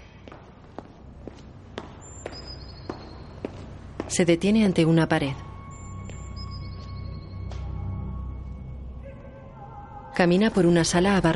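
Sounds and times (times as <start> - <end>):
quiet hum: 0.0 - 11.3
footsteps of someone walking along a school corridor: 0.1 - 4.8, 5.8 - 7.8
speech: 4.1 - 5.4, 10.2 - 11.3.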